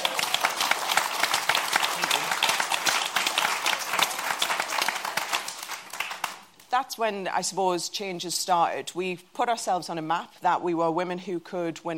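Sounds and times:
audience applause: 0:00.0 - 0:06.5
speech: 0:06.8 - 0:11.9.

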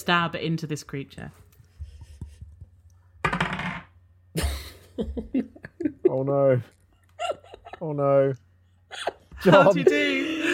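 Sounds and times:
speech: 0:00.0 - 0:01.4, 0:05.0 - 0:06.8, 0:07.8 - 0:10.5
dice rolled on a table during a tabletop role-playing game: 0:03.2 - 0:04.0
laughter: 0:04.4 - 0:10.5.

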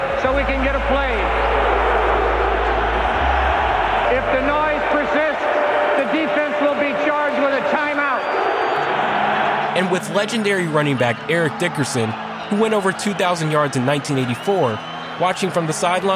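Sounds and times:
stadium football crowd of Lions fans roaring loudly: 0:00.0 - 0:16.1
speech: 0:00.2 - 0:01.4, 0:09.8 - 0:16.1.

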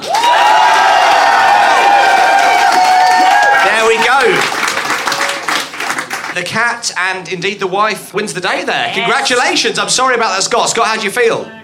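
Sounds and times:
audience applause: 0:00.0 - 0:06.5
speech: 0:06.4 - 0:11.6.

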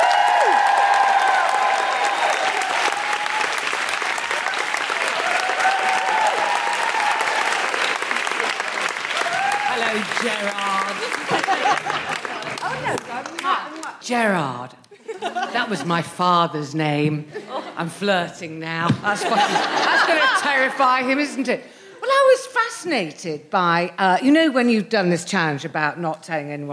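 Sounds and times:
audience applause for a guest comedian at a live show: 0:00.0 - 0:14.0
laughter: 0:09.8 - 0:13.4, 0:15.0 - 0:16.2, 0:17.3 - 0:17.8, 0:19.0 - 0:21.0
speech: 0:14.1 - 0:14.8, 0:15.5 - 0:21.8, 0:22.8 - 0:26.7.

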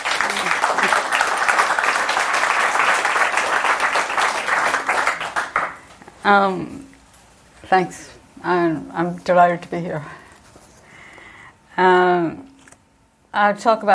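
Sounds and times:
audience applause: 0:00.0 - 0:06.0
speech: 0:06.3 - 0:06.8, 0:07.7 - 0:10.2, 0:13.4 - 0:13.9.

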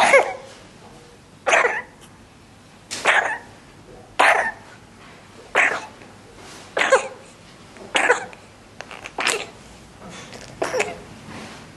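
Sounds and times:
infant coughing: 0:00.0 - 0:00.5, 0:01.5 - 0:02.0, 0:03.0 - 0:03.5, 0:04.2 - 0:04.6, 0:05.6 - 0:06.0, 0:06.8 - 0:07.3, 0:07.9 - 0:08.4, 0:09.2 - 0:09.6, 0:10.6 - 0:11.1.

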